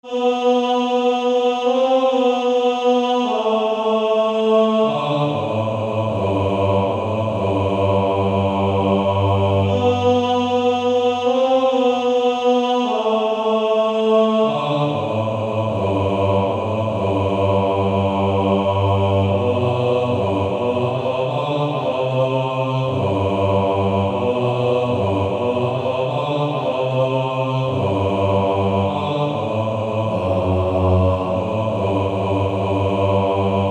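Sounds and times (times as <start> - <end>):
male choir singing: 0.0 - 33.6.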